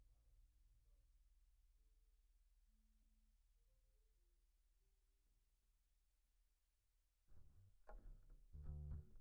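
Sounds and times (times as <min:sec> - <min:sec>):
bass guitar recorded by direct input: 0:07.4 - 0:09.1.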